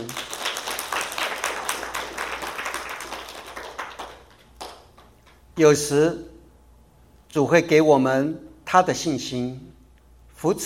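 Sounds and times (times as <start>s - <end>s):
audience applause: 0.0s - 4.9s
speech: 5.6s - 6.3s, 7.3s - 9.8s, 10.4s - 10.6s.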